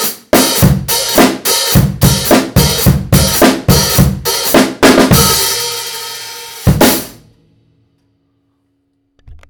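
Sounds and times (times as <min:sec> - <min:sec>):
extra heavy 15-inch hi-hat cymbal: 0:00.0 - 0:07.2.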